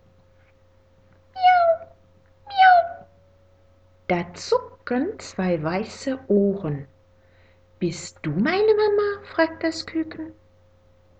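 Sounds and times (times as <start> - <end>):
faint steady hum: 0.0 - 11.1
cat meowing: 1.4 - 3.2
speech: 4.1 - 6.9, 7.8 - 10.4.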